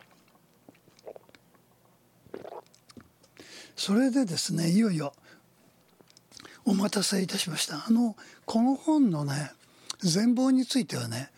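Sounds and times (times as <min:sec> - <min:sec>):
person gulping a beverage: 0:00.0 - 0:01.6, 0:02.2 - 0:03.1
swallowing: 0:00.0 - 0:01.6, 0:02.3 - 0:03.0
speech: 0:03.8 - 0:05.3, 0:06.7 - 0:11.3.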